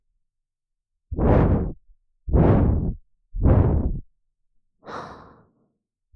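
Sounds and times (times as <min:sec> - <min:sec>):
blowing into the left ear: 0:01.1 - 0:04.0.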